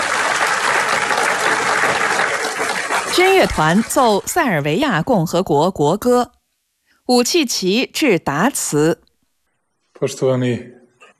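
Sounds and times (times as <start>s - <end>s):
prolonged applause from the whole audience: 0.0s - 4.3s
speech: 3.2s - 6.4s, 7.1s - 9.0s, 10.0s - 10.8s.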